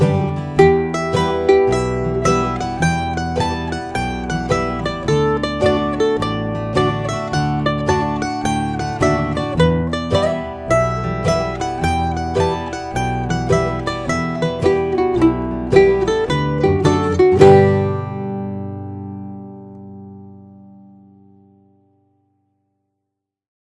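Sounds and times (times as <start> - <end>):
slow reel played on mandolin: 0.0 - 18.9.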